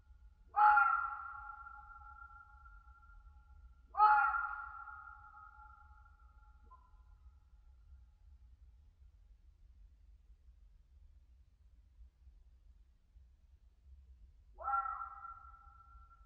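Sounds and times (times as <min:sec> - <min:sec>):
red fox screaming in winter in a European mountain forest: 0:00.6 - 0:01.3, 0:04.0 - 0:04.7, 0:14.6 - 0:15.3.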